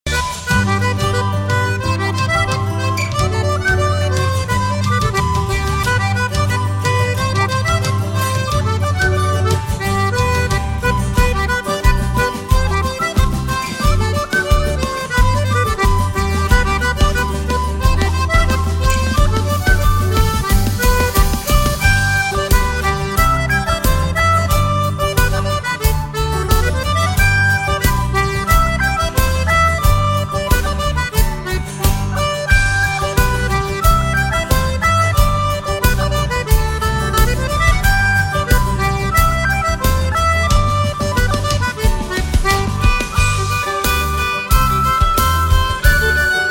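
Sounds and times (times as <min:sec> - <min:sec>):
polka music: 0:00.0 - 0:46.4.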